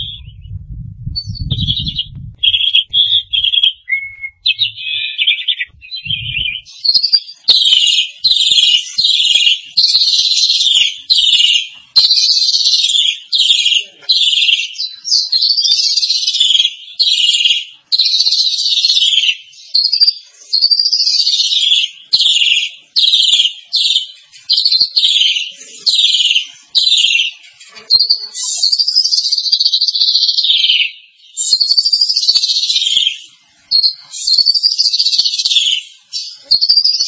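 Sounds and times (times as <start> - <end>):
starling singing buzzy phrases: 0.0 - 37.0.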